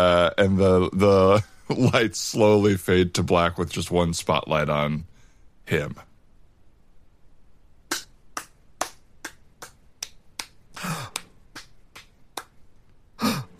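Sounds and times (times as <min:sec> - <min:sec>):
speech: 0:00.0 - 0:05.1, 0:05.7 - 0:06.1
single person clapping: 0:08.4 - 0:12.6.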